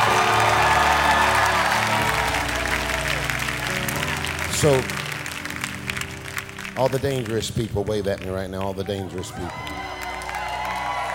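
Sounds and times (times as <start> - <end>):
crowd shouting and cheering: 0.0 - 4.9, 8.7 - 11.1
speech: 4.6 - 5.0, 6.8 - 9.8.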